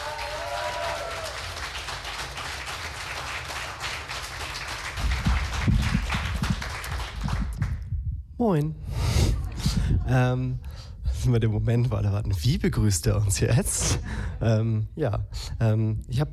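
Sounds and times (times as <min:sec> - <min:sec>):
audience applause welcoming a performer: 0:00.0 - 0:07.8
speech: 0:08.4 - 0:09.0, 0:10.1 - 0:16.3.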